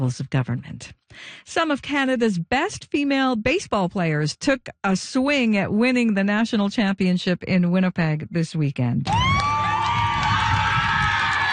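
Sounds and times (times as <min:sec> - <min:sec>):
speech: 0:00.0 - 0:09.5
Team Manitoba cheering after a home run at women's baseball championship: 0:09.1 - 0:11.5.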